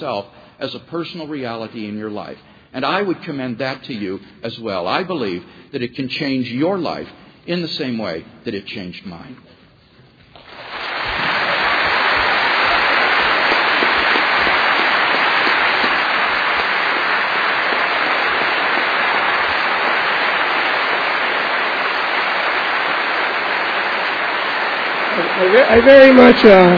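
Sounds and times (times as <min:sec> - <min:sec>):
speech: 0:00.0 - 0:09.6, 0:25.4 - 0:26.7
audience applause: 0:10.4 - 0:26.7.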